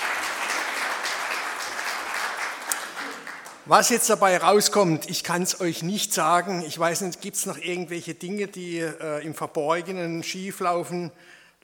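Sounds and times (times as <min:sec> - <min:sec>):
crowd applauding: 0:00.0 - 0:04.0
speech: 0:03.7 - 0:11.6.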